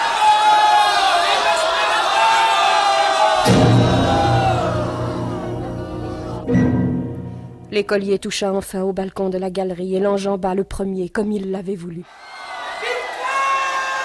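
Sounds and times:
crowd of vagabonds shouting and storming: 0.0s - 6.6s, 12.1s - 14.0s
speech: 7.7s - 12.4s.

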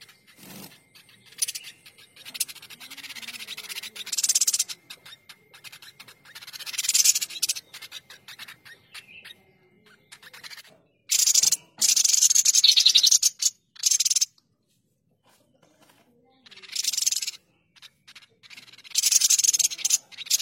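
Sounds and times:
streaked spiderhunter rasping chattering song: 0.0s - 14.4s, 15.3s - 20.4s.

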